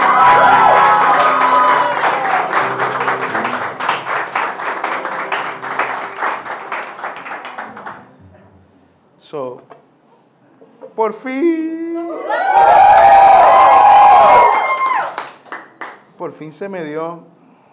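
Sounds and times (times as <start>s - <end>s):
audience applause: 0.0s - 8.1s, 12.3s - 15.8s
speech: 11.1s - 11.7s, 16.4s - 17.4s.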